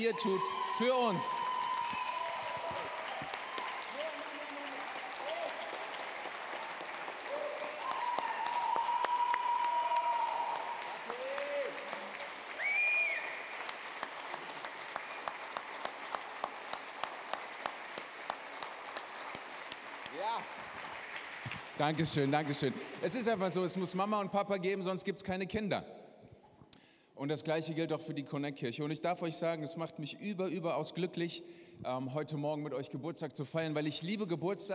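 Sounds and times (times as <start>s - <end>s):
speech: 0.0s - 1.5s, 21.8s - 26.0s, 27.2s - 34.7s
voices cheering: 0.0s - 14.1s
large audience applause: 0.0s - 23.4s.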